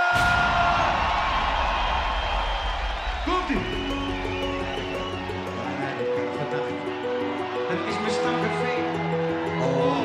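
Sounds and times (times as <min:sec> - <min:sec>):
audience applause and cheering: 0:00.0 - 0:10.0.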